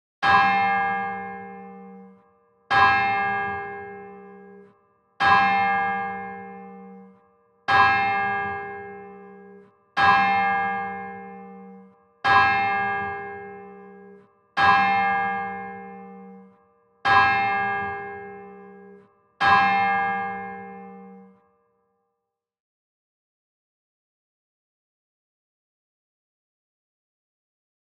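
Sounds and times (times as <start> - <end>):
prayer bells ringing: 0.2 - 21.6.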